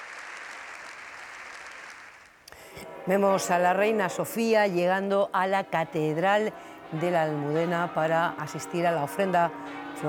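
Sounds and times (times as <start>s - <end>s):
long ovation applause: 0.0s - 2.9s
speech: 3.1s - 10.0s.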